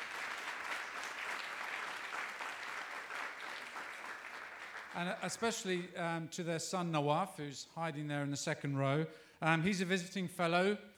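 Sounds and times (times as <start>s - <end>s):
audience applause: 0.0s - 5.2s
speech: 5.0s - 10.9s.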